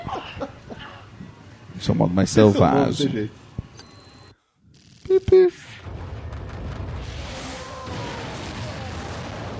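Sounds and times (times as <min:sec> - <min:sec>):
speech: 0:01.8 - 0:03.4
video game explosion roar: 0:05.7 - 0:09.5.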